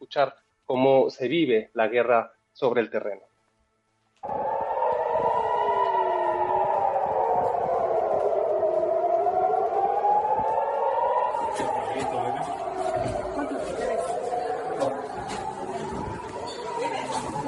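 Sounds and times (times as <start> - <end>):
speech: 0.1 - 3.3
air raid warning siren: 4.2 - 17.4.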